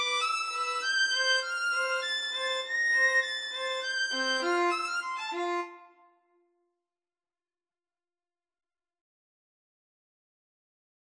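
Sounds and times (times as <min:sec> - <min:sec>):
violin trio waltz: 0:00.0 - 0:05.6.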